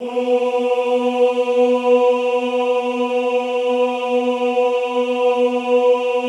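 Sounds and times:
classical choir singing ooh: 0:00.0 - 0:06.2.

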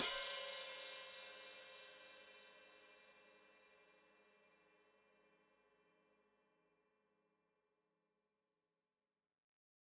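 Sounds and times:
open hi-hat played with foot: 0:00.0 - 0:01.4.

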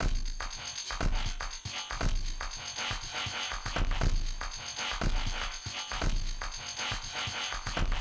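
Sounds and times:
big kick electronic beat: 0:00.0 - 0:07.9.

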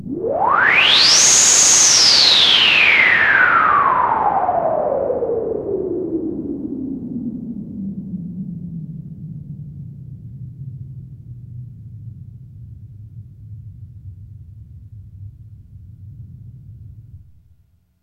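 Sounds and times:
synth noise sweep: 0:00.0 - 0:05.7.

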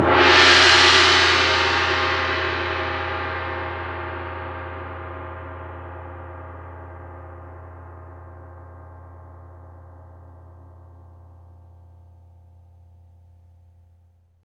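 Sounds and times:
large cymbal: 0:00.0 - 0:10.9.

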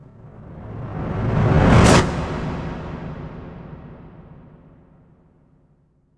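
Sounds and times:
impact whoosh: 0:00.0 - 0:04.9.

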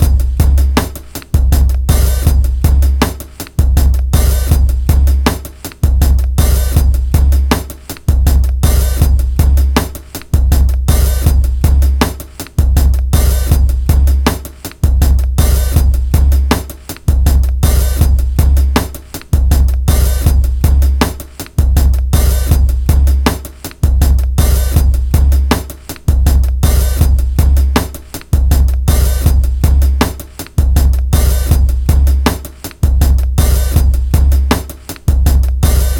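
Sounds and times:
160 bpm breakbeat music: 0:00.0 - 0:35.9.

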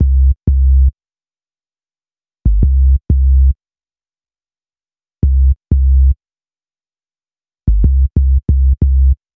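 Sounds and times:
hip-hop bass: 0:00.0 - 0:00.9, 0:02.5 - 0:03.5, 0:05.2 - 0:06.1, 0:07.7 - 0:09.2.

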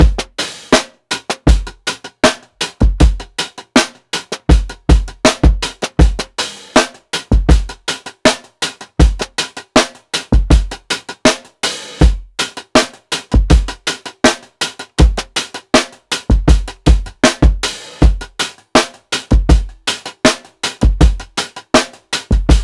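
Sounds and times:
piccolo drum sixteenth-note beat loop: 0:00.0 - 0:22.6.

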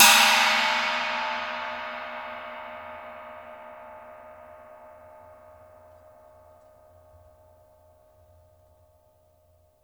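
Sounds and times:
cymbals: 0:00.0 - 0:05.3.

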